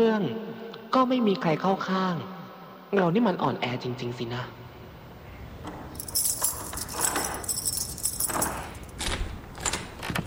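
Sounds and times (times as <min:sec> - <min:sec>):
speech: 0:00.0 - 0:04.6
low noise: 0:00.0 - 0:10.2
keys jangling unlocking a locked bedroom door: 0:05.9 - 0:10.2.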